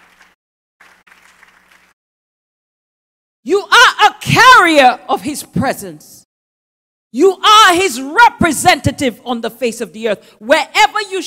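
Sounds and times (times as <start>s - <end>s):
audience clapping hands: 0.0s - 2.0s
speech: 4.4s - 6.2s, 7.1s - 11.2s.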